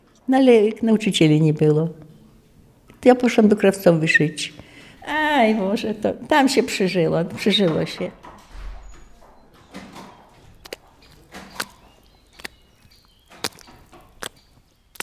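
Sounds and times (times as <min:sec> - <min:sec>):
speech: 0:00.3 - 0:02.0, 0:03.0 - 0:08.2
footsteps squelching through thick mud: 0:09.8 - 0:15.0.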